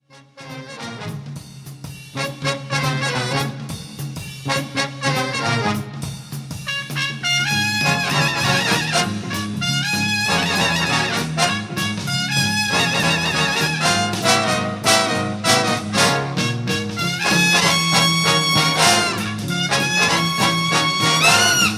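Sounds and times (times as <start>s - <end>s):
swing music: 0.0s - 21.7s.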